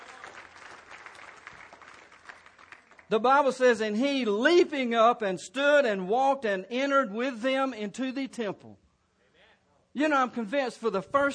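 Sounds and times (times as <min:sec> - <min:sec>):
church congregation clapping in praise during a sermon: 0:00.0 - 0:03.3
speech: 0:03.1 - 0:08.8, 0:10.0 - 0:11.3.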